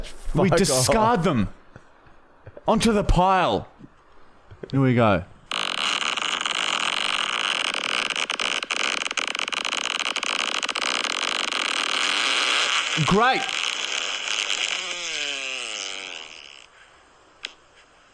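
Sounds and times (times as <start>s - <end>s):
speech: 0.3s - 1.6s, 2.6s - 3.7s, 4.6s - 5.3s, 13.0s - 13.6s
fart with a little pop at the end: 5.5s - 16.7s.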